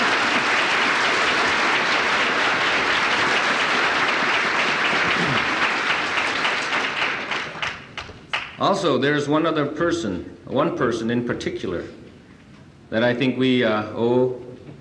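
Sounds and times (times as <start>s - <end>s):
audience applause: 0.0s - 8.6s
speech: 8.6s - 12.0s, 12.9s - 14.5s.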